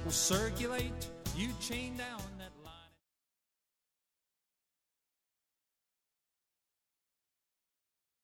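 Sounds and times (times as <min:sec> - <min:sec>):
vocals: 0:00.0 - 0:03.0.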